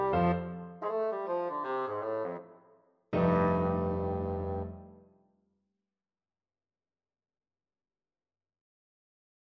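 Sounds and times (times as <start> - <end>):
bassoon: 0.0 - 2.6, 3.2 - 5.0.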